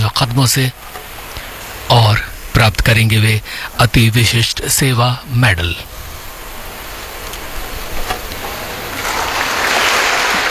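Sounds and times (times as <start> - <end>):
speech: 0.4 - 1.0, 2.6 - 5.9
audience applause at ceremony: 8.9 - 10.4.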